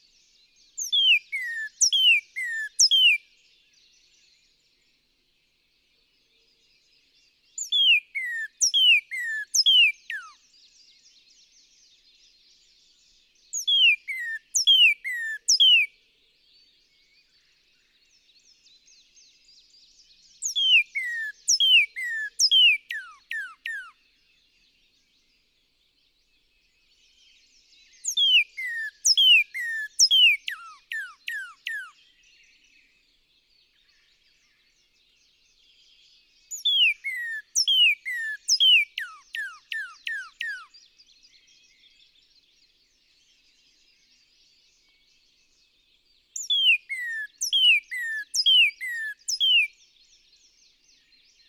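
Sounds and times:
Northern cardinal singing slurred downward whistles: 0.7s - 3.3s, 7.6s - 10.4s, 13.5s - 15.9s, 19.2s - 24.0s, 27.2s - 33.0s, 35.6s - 42.1s, 46.3s - 50.4s.

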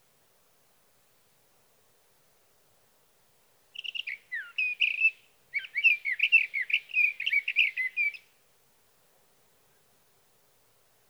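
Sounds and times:
sage thrasher song: 3.8s - 8.2s.

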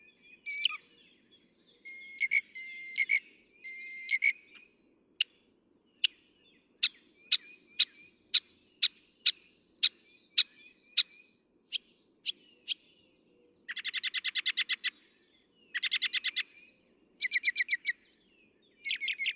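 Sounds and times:
Northern Mockingbird singing: 0.4s - 1.0s, 1.7s - 4.6s, 6.8s - 13.0s, 13.7s - 15.0s, 15.6s - 16.6s, 17.2s - 18.0s, 18.8s - 19.3s.

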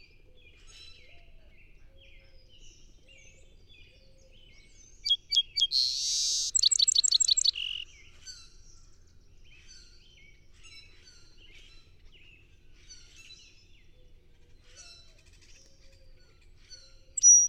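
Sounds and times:
faint bird chirps: 0.0s - 8.0s, 13.8s - 17.4s
song sparrow song: 0.0s - 17.4s.

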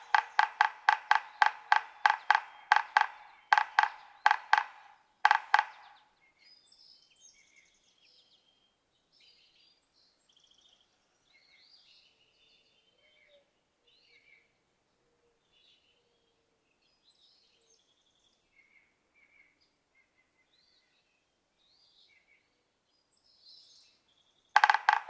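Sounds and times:
yellow-bellied sapsucker nasal mewing notes: 0.0s - 6.0s, 24.6s - 25.0s.

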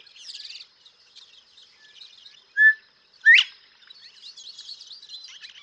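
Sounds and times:
Northern bobwhite whistled call with sharply rising whistle: 2.6s - 3.5s.

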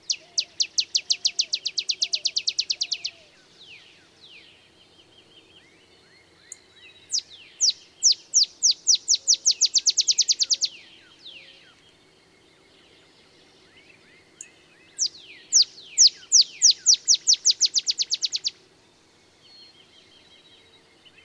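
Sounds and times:
Olive Sparrow calling: 0.0s - 4.1s, 6.4s - 11.8s, 13.9s - 18.6s.

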